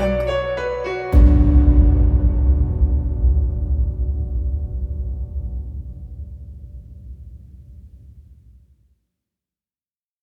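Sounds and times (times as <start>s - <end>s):
epic piano music: 0.0s - 6.8s.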